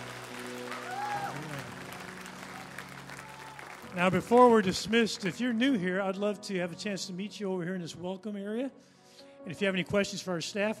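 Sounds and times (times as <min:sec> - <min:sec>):
audience applauding: 0:00.0 - 0:05.7
speech: 0:04.0 - 0:10.7.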